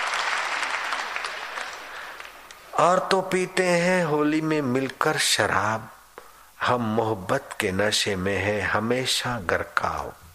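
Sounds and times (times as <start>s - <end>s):
audience clapping at a Holi ghazal and poetry gathering: 0.0s - 3.2s
speech: 2.8s - 6.0s, 6.6s - 10.2s.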